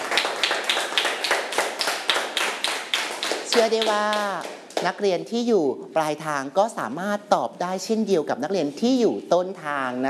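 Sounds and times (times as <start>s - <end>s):
students clapping: 0.0s - 4.9s
speech: 3.6s - 10.0s.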